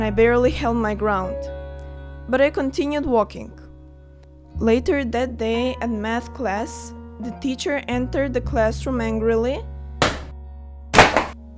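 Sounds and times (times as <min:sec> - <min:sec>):
speech: 0:00.0 - 0:01.5, 0:02.3 - 0:03.6, 0:04.6 - 0:09.7
books slammed on a desk: 0:10.0 - 0:10.3, 0:11.0 - 0:11.4.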